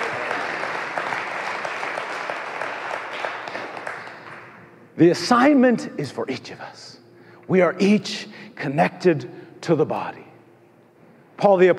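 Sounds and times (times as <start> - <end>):
audience clapping: 0.0 - 4.7
speech: 5.0 - 10.3, 11.4 - 11.7.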